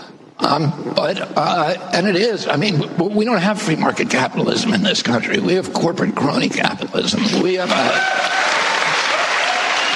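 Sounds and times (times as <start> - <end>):
speech: 0.4 - 8.6
rousing applause: 7.6 - 9.9.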